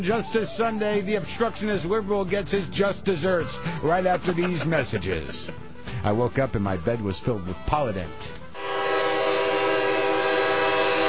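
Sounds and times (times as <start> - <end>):
speech: 0.0 - 8.4
laughter: 3.4 - 5.7
train horn blaring: 8.5 - 11.0.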